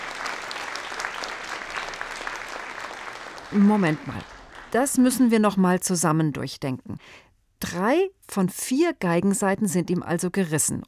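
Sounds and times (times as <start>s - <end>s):
audience applauding wildly: 0.0s - 5.1s
speech: 3.5s - 10.8s.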